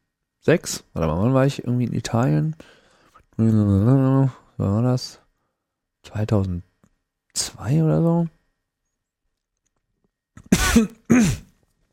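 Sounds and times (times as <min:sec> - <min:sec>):
speech: 0:00.4 - 0:02.8, 0:03.4 - 0:05.2, 0:06.0 - 0:06.7, 0:07.4 - 0:08.4, 0:10.4 - 0:11.4
person coughing after choking on gingerbread: 0:10.4 - 0:11.6.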